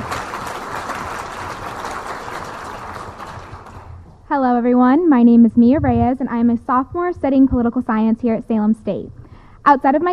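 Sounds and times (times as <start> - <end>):
audience applause: 0.0 - 4.0
speech: 4.3 - 10.1.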